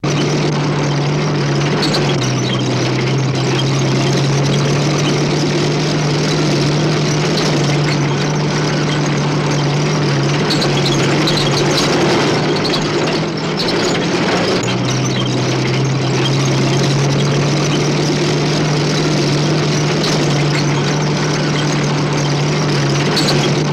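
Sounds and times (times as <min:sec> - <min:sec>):
tank running steadily: 0:00.0 - 0:23.7.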